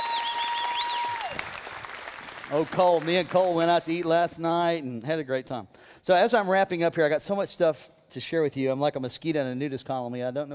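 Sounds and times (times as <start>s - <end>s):
audience applause: 0.0s - 4.0s
speech: 2.5s - 10.5s.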